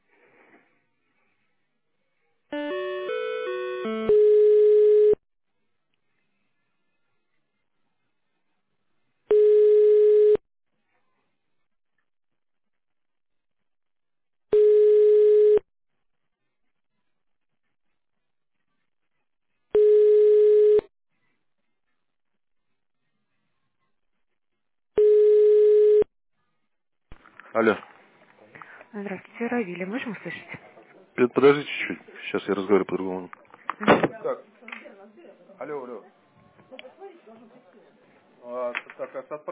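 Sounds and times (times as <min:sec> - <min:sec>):
telephone ringback tone: 0:02.6 - 0:05.2, 0:09.3 - 0:10.4, 0:14.5 - 0:15.6, 0:19.8 - 0:20.9, 0:25.0 - 0:26.1
speech: 0:27.6 - 0:27.9, 0:28.9 - 0:34.8, 0:35.6 - 0:37.8, 0:38.4 - 0:39.5.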